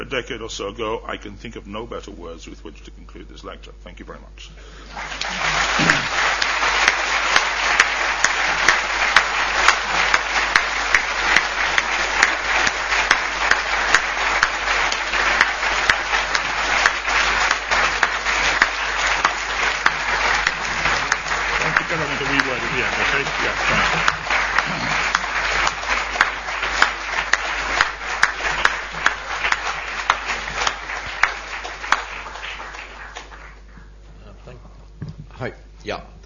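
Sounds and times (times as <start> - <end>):
speech: 0.1 - 6.3
lecture audience applause: 4.8 - 33.9.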